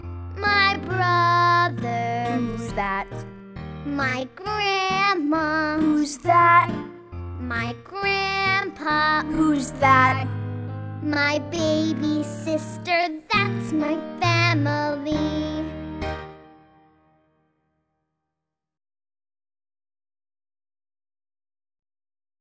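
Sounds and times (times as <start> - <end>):
slow family song: 0.0 - 17.5.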